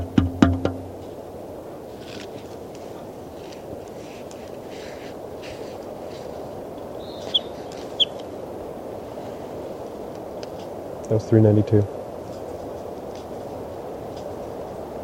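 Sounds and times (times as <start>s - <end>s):
bird calling: 2.9s - 9.4s
speech: 11.2s - 12.0s.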